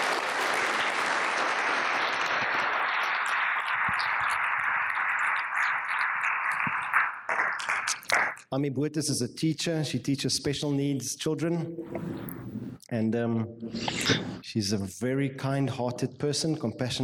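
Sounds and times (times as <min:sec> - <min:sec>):
applause: 0:00.0 - 0:08.4
speech: 0:08.5 - 0:12.4, 0:13.0 - 0:17.0.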